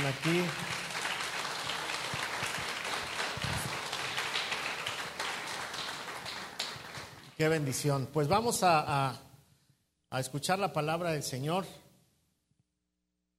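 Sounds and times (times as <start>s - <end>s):
audience applause: 0.0s - 7.4s
speech: 0.1s - 0.8s, 7.4s - 9.3s, 10.1s - 11.8s.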